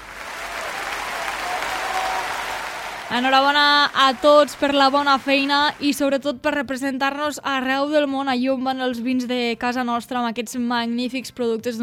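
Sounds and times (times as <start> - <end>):
applause: 0.0 - 6.0
speech: 3.1 - 11.8.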